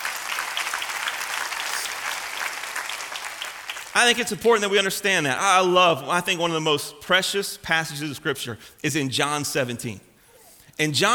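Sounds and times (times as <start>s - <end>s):
audience clapping: 0.0s - 4.4s
speech: 4.0s - 10.1s, 10.8s - 11.1s.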